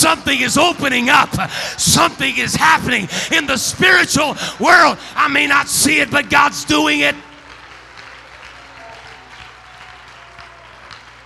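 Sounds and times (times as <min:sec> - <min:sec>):
speech: 0:00.1 - 0:07.3
audience clapping: 0:05.2 - 0:11.2.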